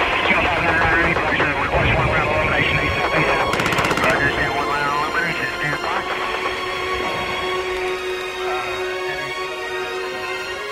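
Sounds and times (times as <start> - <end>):
voices and radio-like chatter: 0.0 - 10.6
AK-47 gunfire burst: 3.4 - 4.6.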